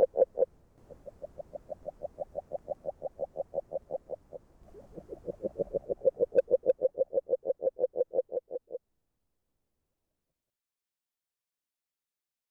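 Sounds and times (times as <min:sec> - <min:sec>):
agile frog call in Hungary: 0:00.0 - 0:08.8.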